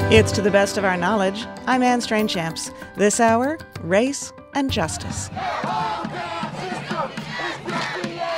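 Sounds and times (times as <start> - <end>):
speech: 0.1 - 6.2
protest crowd chanting in Madison: 4.8 - 8.3.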